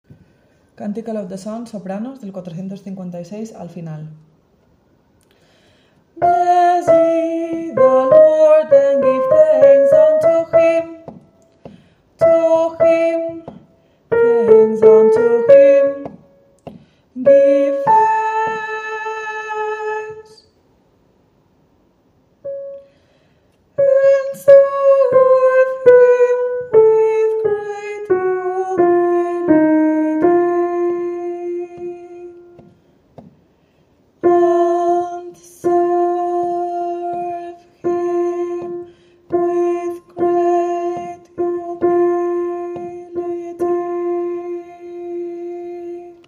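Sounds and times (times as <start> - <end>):
soprano singing: 6.2 - 11.2, 12.2 - 16.3, 17.2 - 20.5, 23.8 - 32.7, 34.2 - 46.2.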